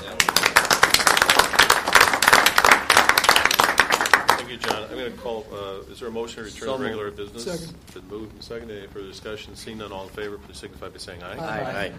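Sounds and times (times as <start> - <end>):
crowd applause: 0.0 - 4.8
speech: 5.1 - 11.9.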